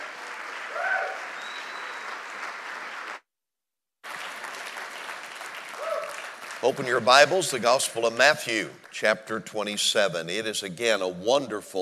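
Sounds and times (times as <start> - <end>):
church congregation at Pacific Baptist Church in Long Beach, California applauding: 0.0 - 3.2, 4.0 - 9.4
speech: 6.6 - 11.7.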